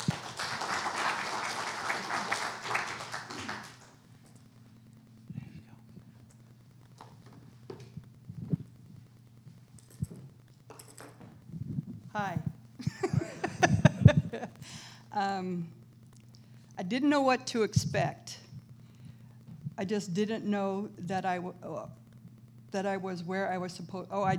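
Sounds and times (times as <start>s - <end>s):
laughter: 0.0s - 3.9s, 12.2s - 14.8s
audience applause welcoming a speaker: 0.0s - 4.0s
faint taps and knocks: 5.9s - 12.6s
speech: 12.2s - 12.4s, 15.2s - 15.8s, 16.8s - 18.4s, 19.8s - 22.0s, 22.7s - 24.3s.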